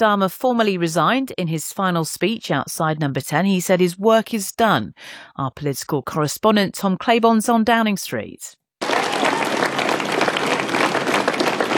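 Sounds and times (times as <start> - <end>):
speech: 0.0 - 8.6
crowd applause on Downing Street: 8.8 - 11.7.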